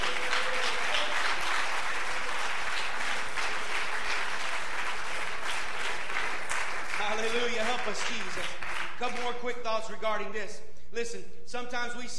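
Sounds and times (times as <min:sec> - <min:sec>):
audience hand clapping in praise: 0:00.0 - 0:09.6
speech: 0:07.9 - 0:12.1.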